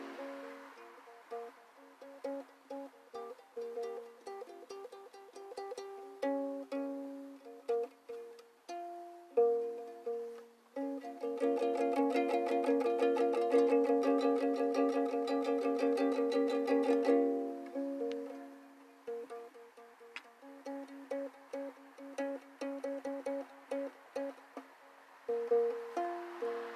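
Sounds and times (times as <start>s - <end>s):
ukulele played live: 0.0s - 26.7s.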